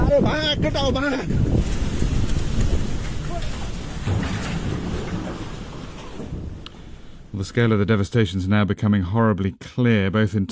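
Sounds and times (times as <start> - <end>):
wind buffeting the microphone: 0.0 - 7.3
speech: 0.2 - 1.7, 7.4 - 10.4
floodwater rushing towards a workman in Nepal: 1.0 - 7.5.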